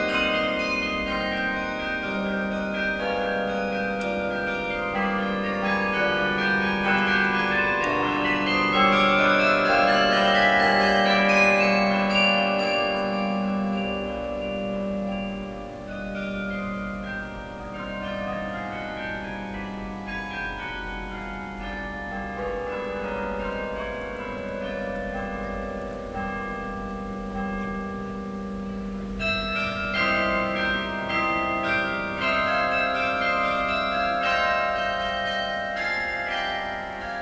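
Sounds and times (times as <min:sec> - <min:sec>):
carillon concert: 0:00.0 - 0:37.1.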